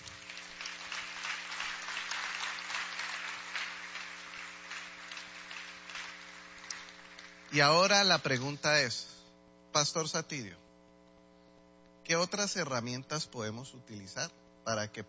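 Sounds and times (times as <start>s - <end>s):
audience applause: 0.0s - 8.0s
speech: 7.5s - 9.2s, 9.8s - 10.6s, 12.1s - 15.0s.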